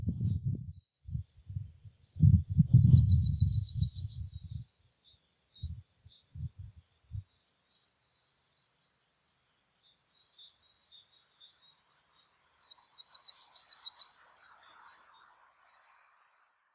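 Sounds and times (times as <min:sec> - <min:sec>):
yellowhammer singing in Grimsvik Urshult: 0:01.6 - 0:08.7, 0:09.8 - 0:16.1.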